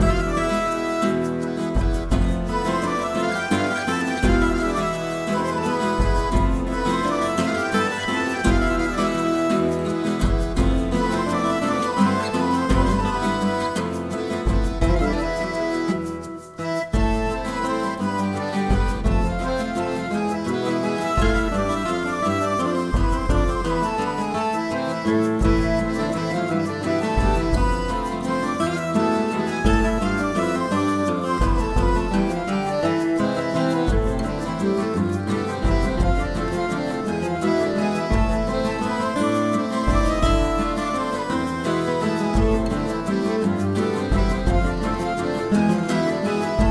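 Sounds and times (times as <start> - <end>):
town tavern ambience: 0.0 - 46.6.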